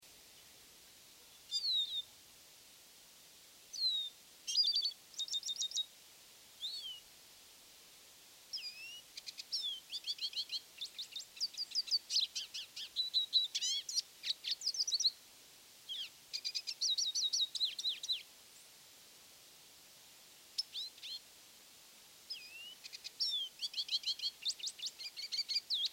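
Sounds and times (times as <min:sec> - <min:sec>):
lesser goldfinch singing: 0:01.3 - 0:02.1, 0:03.7 - 0:05.9, 0:06.6 - 0:07.0, 0:08.5 - 0:15.2, 0:15.9 - 0:18.7, 0:20.6 - 0:21.2, 0:22.3 - 0:25.9.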